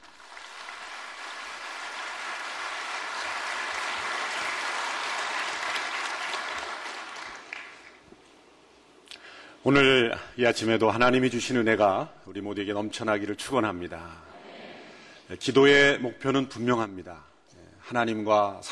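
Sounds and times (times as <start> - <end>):
audience applause: 0.0 - 8.0
speech: 9.6 - 14.3, 15.3 - 17.3, 17.9 - 18.6.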